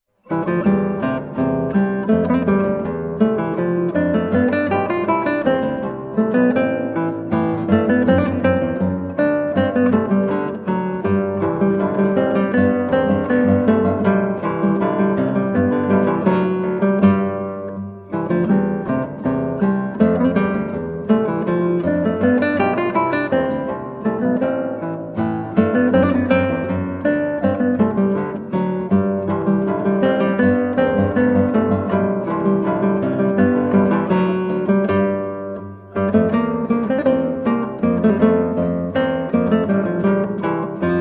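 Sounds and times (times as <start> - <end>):
andante guitar: 0.0 - 40.9.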